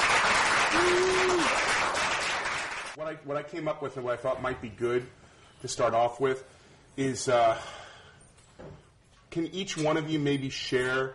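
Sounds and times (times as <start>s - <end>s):
audience applause welcoming panel guests to a TV series discussion: 0.0s - 3.0s
speech: 3.1s - 7.8s, 8.6s - 11.1s.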